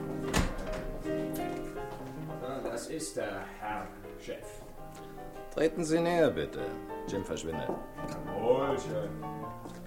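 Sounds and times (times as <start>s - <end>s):
door in the corner opening and shutting with a solid thunk: 0.1s - 1.5s
speech: 2.9s - 9.7s.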